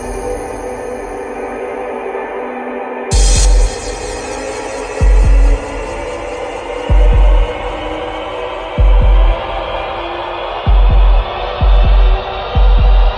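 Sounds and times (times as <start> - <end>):
epic kick drum intro: 3.1 - 3.9, 5.0 - 5.7, 6.9 - 7.5, 8.8 - 9.7, 10.7 - 13.1.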